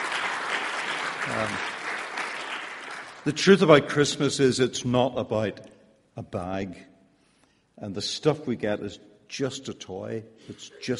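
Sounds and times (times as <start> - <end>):
audience applause: 0.0 - 3.4
speech: 1.3 - 1.8, 3.2 - 6.9, 7.8 - 10.9.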